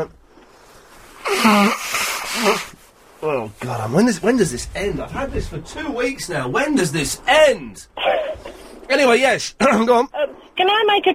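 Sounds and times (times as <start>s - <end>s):
nose blowing: 1.1s - 2.9s
speech: 1.5s - 2.5s, 3.6s - 8.1s, 8.9s - 11.1s.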